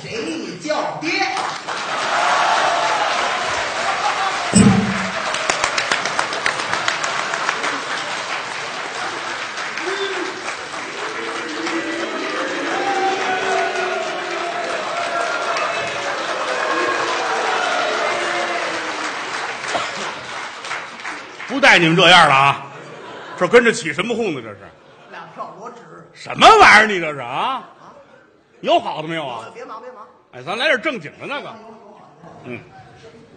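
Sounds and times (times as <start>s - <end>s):
live audience applause: 1.4s - 22.1s
crowd shouting and cheering: 1.7s - 6.0s, 9.8s - 19.3s
sharp bang: 4.5s - 5.4s
speech: 21.8s - 22.6s, 23.4s - 24.8s, 26.1s - 27.8s, 28.6s - 31.7s, 32.4s - 32.7s.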